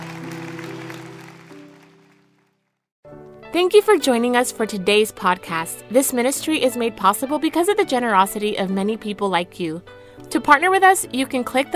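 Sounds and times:
audience clapping hands: 0:00.0 - 0:02.6
speech: 0:03.5 - 0:11.7.

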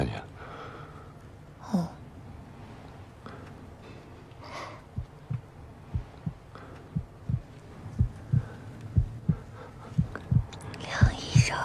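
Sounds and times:
fast heartbeat: 0:04.9 - 0:11.6.

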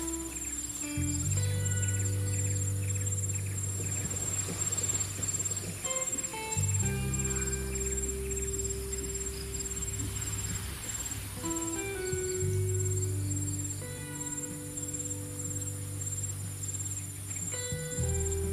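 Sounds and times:
calm lofi music with soft low chords: 0:00.0 - 0:18.5
gentle wave wash: 0:00.0 - 0:18.5
steady high cricket trill: 0:00.0 - 0:18.5.

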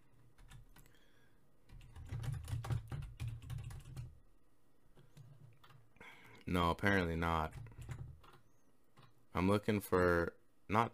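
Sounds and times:
typing a search on a computer keyboard: 0:00.4 - 0:01.0, 0:01.7 - 0:04.2, 0:05.0 - 0:05.8, 0:07.2 - 0:09.2
speech: 0:06.5 - 0:07.7, 0:09.4 - 0:10.9.

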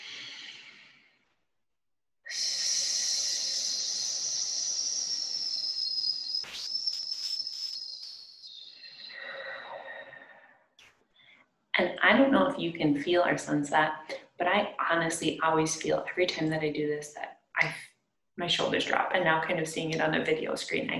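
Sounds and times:
short breath in: 0:09.0 - 0:11.4
speech: 0:11.8 - 0:20.9.

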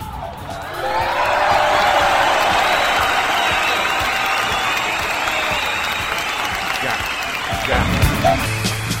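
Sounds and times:
cheers and whoops: 0:00.0 - 0:08.2
audience applause: 0:00.5 - 0:08.9.

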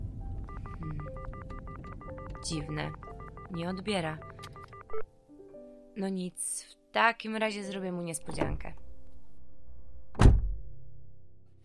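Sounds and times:
low rumble: 0:00.0 - 0:05.0, 0:08.1 - 0:11.6
phone keypad dialing tones: 0:00.4 - 0:05.0
speech: 0:02.4 - 0:05.1, 0:06.0 - 0:08.8.

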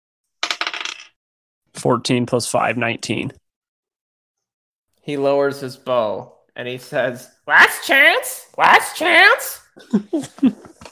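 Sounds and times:
dice clattering across a hard surface: 0:00.4 - 0:01.1
speech: 0:01.8 - 0:03.4, 0:05.0 - 0:10.8
laughter: 0:09.8 - 0:10.8.

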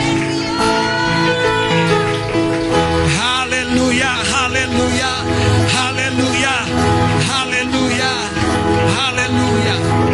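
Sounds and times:
audience applause: 0:00.0 - 0:10.1
sustained keyboard chords: 0:00.0 - 0:10.1.

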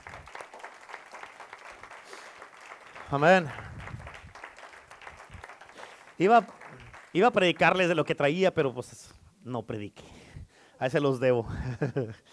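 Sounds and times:
audience applauding: 0:00.0 - 0:08.4
speech: 0:03.1 - 0:03.7, 0:06.2 - 0:10.0, 0:10.8 - 0:12.3
laughter: 0:11.4 - 0:12.2.

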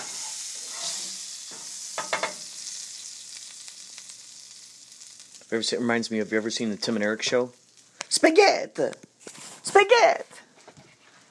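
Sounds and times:
potatoes sizzling in a pan: 0:00.0 - 0:08.9
speech: 0:05.5 - 0:07.6, 0:08.2 - 0:09.0, 0:09.8 - 0:10.4.

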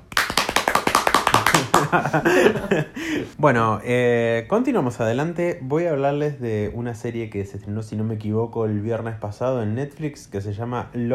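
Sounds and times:
applause: 0:00.0 - 0:02.2
laughter: 0:01.5 - 0:03.3
speech: 0:01.9 - 0:11.1.

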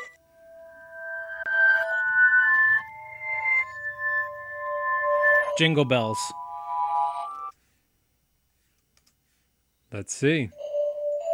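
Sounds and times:
music box melody played backwards: 0:00.0 - 0:07.5, 0:10.5 - 0:11.3
speech: 0:05.6 - 0:06.4, 0:09.9 - 0:10.6.

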